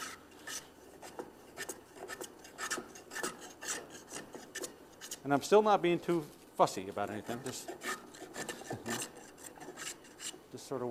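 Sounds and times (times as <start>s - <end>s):
hand plane shaving wood: 0.0s - 5.2s, 7.2s - 10.4s
speech: 5.2s - 7.9s, 10.5s - 10.8s.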